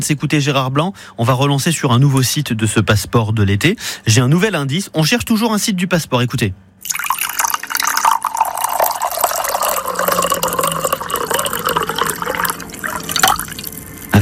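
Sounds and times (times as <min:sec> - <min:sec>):
speech: 0:00.0 - 0:07.0
running water: 0:06.8 - 0:14.2.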